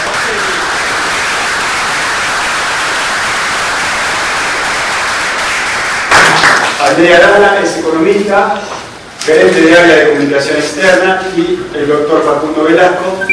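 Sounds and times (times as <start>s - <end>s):
audience applause: 0.0s - 6.8s
speech: 6.9s - 8.7s, 9.3s - 13.3s.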